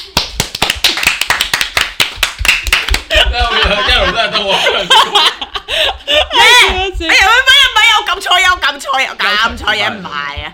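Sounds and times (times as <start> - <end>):
hand clapping: 0.0 - 3.4
laughter: 3.0 - 6.8
speech: 3.3 - 10.5.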